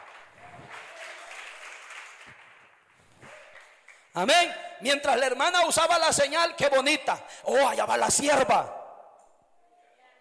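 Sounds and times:
audience applause: 0.0 - 4.1
speech: 4.2 - 8.8.

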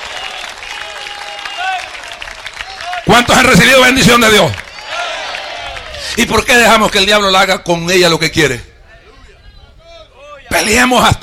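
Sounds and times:
audience applause: 0.0 - 6.5
speech: 3.1 - 4.6, 6.2 - 8.7, 10.6 - 11.2.

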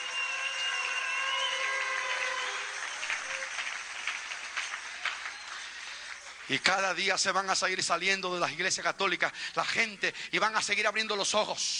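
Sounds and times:
audience applause: 0.0 - 7.0
speech: 6.5 - 11.7.

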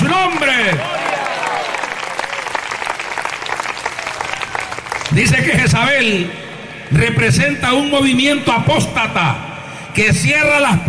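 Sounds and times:
audience applause: 0.0 - 5.3
speech: 5.2 - 9.4, 10.0 - 10.8.

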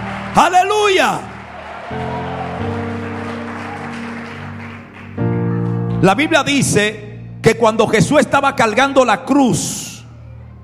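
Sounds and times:
audience applause: 0.0 - 6.0
organ-like keyboard chords: 0.0 - 10.6
speech: 0.4 - 1.3, 1.9 - 2.1, 6.0 - 9.9.

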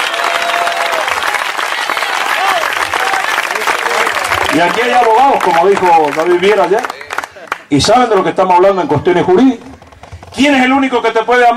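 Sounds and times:
audience applause: 0.0 - 8.4
speech: 4.6 - 6.9, 7.7 - 9.7, 10.4 - 11.5.

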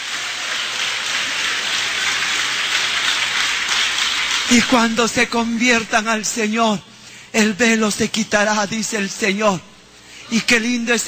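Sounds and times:
audience applauding: 0.0 - 5.4
speech: 4.5 - 9.7, 10.3 - 11.0.

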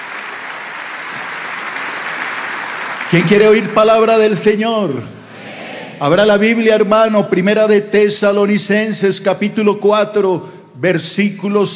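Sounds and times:
audience applauding: 0.0 - 3.6
speech: 3.1 - 5.2, 6.0 - 11.7.

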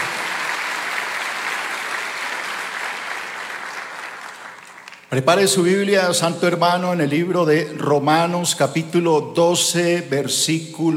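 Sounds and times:
audience applause: 0.0 - 5.2
speech: 5.1 - 10.9.

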